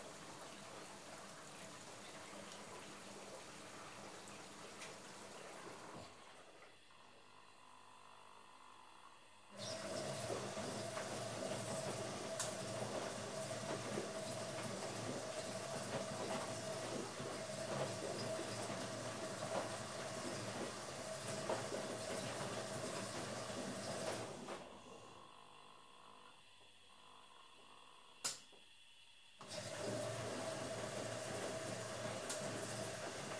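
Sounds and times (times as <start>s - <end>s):
washing machine running: 0.0s - 28.3s, 29.4s - 33.3s.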